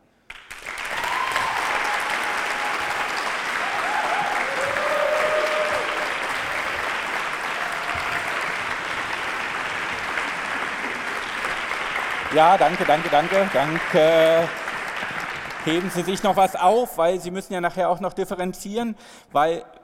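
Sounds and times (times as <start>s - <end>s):
crowd applause: 0.3s - 16.8s
faint whoops: 0.9s - 6.2s
speech: 12.4s - 14.7s, 15.6s - 19.8s.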